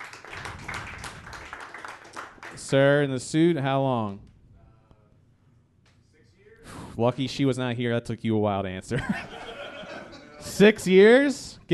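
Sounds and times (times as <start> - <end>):
audience clapping: 0.0 - 2.8
speech: 2.6 - 4.3, 7.0 - 9.4, 10.6 - 11.7
laughter: 9.0 - 10.5.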